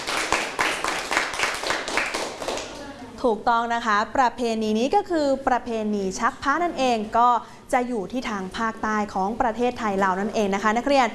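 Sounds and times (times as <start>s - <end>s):
group of students clapping: 0.0s - 2.9s
speech: 3.2s - 11.1s.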